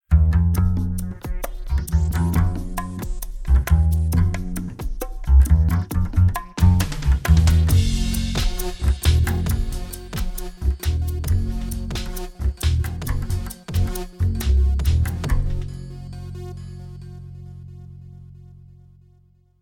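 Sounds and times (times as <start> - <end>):
comedic electro double bass: 0.1 - 18.9.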